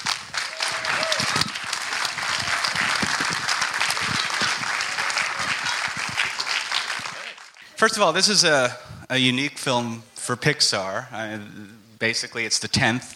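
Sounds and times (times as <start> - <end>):
audience applause at the Museum of the Moving Image in New York City: 0.0 - 7.8
speech: 7.8 - 13.1.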